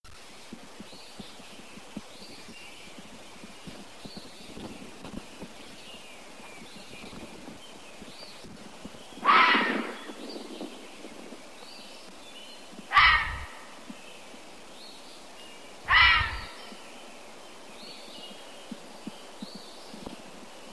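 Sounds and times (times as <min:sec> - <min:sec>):
animal: 0:09.2 - 0:10.2, 0:12.9 - 0:13.8, 0:15.9 - 0:16.8.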